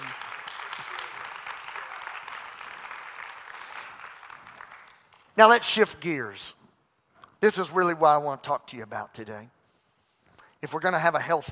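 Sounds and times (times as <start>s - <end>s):
audience clapping hands: 0.0s - 5.9s
speech: 5.4s - 6.6s, 7.4s - 9.6s, 10.6s - 11.5s.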